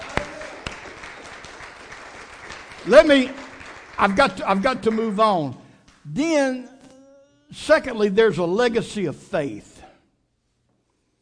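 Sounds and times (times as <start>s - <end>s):
audience hand clapping: 0.0s - 6.1s
speech: 2.8s - 3.4s, 4.0s - 6.7s, 7.5s - 9.7s.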